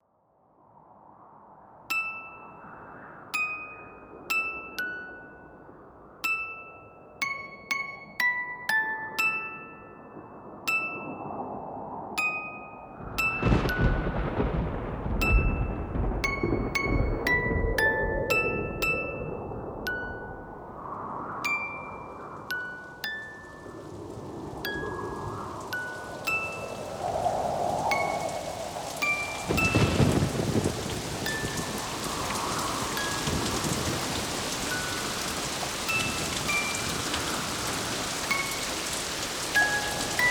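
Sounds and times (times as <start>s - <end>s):
music box: 1.9s - 11.6s, 12.2s - 20.8s, 21.4s - 40.2s
storm: 12.8s - 22.5s, 23.5s - 40.2s.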